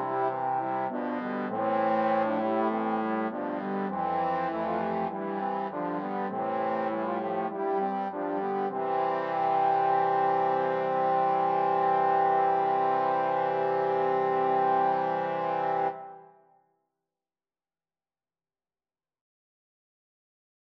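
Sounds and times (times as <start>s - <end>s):
trombone quartet: 0.0s - 16.2s.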